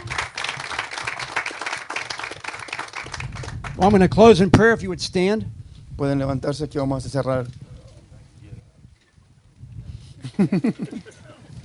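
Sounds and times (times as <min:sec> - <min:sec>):
audience applause: 0:00.0 - 0:03.9
speech: 0:03.8 - 0:07.6, 0:10.4 - 0:11.2
laughter: 0:10.2 - 0:11.6.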